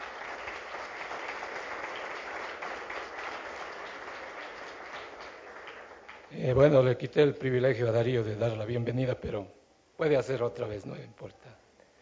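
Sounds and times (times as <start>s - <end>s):
welcome applause from church audience: 0.0s - 6.3s
speech: 6.3s - 11.6s.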